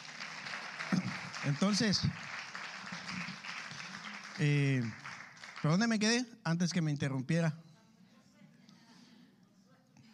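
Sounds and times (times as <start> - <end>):
audience applause: 0.0 - 6.1
speech: 1.4 - 2.4, 4.4 - 5.0, 5.6 - 7.6.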